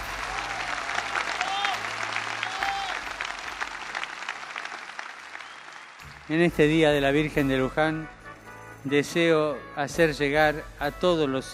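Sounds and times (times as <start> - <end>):
crowd applauding: 0.0 - 6.8
speech: 6.3 - 8.2, 8.8 - 11.5.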